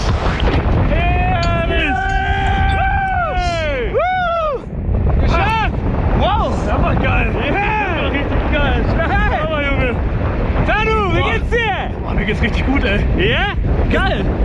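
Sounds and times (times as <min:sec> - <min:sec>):
wind rushing during skydiving free fall: 0:00.0 - 0:14.4
excited people whooping and shouting: 0:00.9 - 0:04.8.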